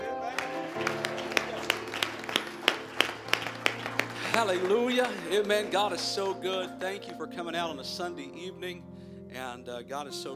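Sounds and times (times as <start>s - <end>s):
audience clapping in rhythm: 0.0s - 7.2s
keyboard or organ chords: 0.0s - 10.3s
speech: 4.4s - 10.3s.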